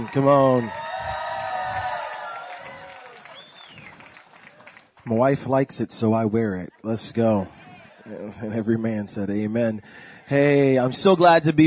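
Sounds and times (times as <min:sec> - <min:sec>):
speech: 0:00.0 - 0:00.8, 0:05.1 - 0:11.6
crowd cheering and applauding loudly: 0:00.0 - 0:05.2
high whoops and shouts: 0:00.4 - 0:03.9
laughter: 0:06.6 - 0:08.8.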